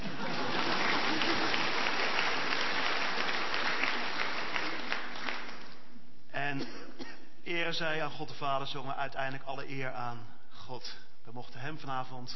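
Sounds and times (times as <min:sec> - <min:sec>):
audience applause: 0:00.0 - 0:05.9
speech: 0:07.7 - 0:12.3.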